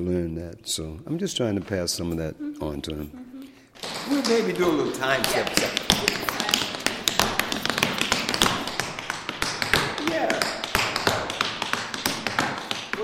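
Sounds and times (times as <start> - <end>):
speech: 0.0 - 3.2, 3.8 - 6.3
tap dance steps on a hard floor: 3.8 - 13.0.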